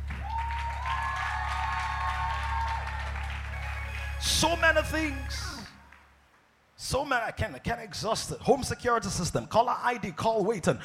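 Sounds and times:
audience clapping: 0:00.0 - 0:06.6
speech: 0:04.2 - 0:05.5, 0:06.9 - 0:10.8.

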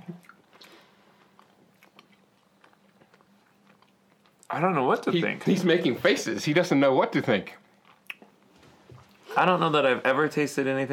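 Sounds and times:
person chewing and biting food with cheese: 0:00.1 - 0:04.5, 0:07.7 - 0:09.2
speech: 0:04.5 - 0:07.6, 0:09.4 - 0:10.9.

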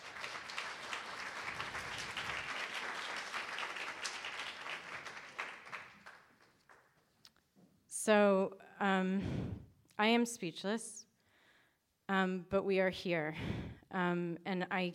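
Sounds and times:
audience applause: 0:00.0 - 0:06.9
speech: 0:08.1 - 0:11.0, 0:12.1 - 0:14.9.

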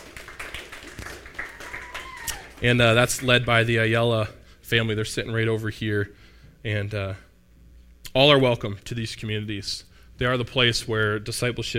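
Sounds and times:
scattered clapping from a small crowd: 0:00.0 - 0:03.4
speech: 0:02.6 - 0:07.3, 0:08.2 - 0:11.7.

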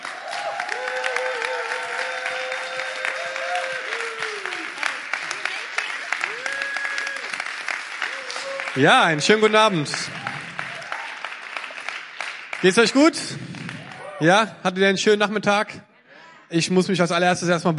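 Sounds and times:
audience applause: 0:00.0 - 0:14.2
speech: 0:08.8 - 0:10.2, 0:12.6 - 0:13.6, 0:14.2 - 0:15.9, 0:16.5 - 0:17.7.

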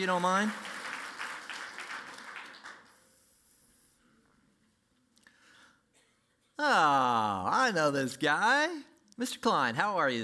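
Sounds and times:
speech: 0:00.0 - 0:00.7, 0:06.6 - 0:10.2
audience applause: 0:00.0 - 0:03.0.

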